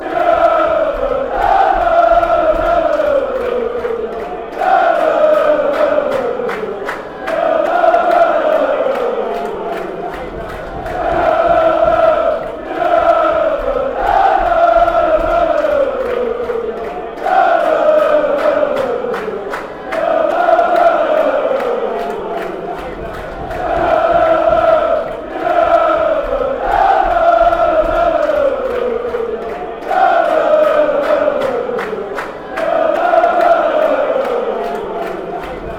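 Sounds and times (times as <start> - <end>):
fans chanting lalalala: 0.0 - 35.7.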